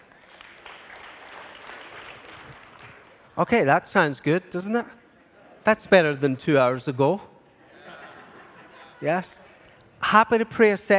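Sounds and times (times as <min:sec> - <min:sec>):
audience clapping: 0:00.0 - 0:03.4
speech: 0:03.4 - 0:05.0, 0:05.6 - 0:07.3, 0:09.0 - 0:09.5, 0:10.1 - 0:10.9
laughter: 0:07.6 - 0:09.6.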